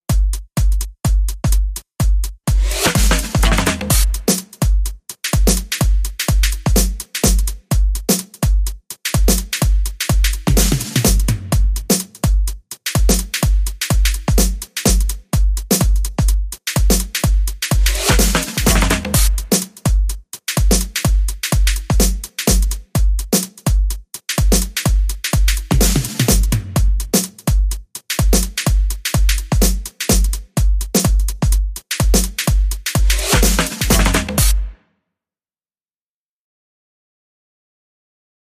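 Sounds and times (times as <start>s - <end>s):
music beat: 0.0s - 34.7s.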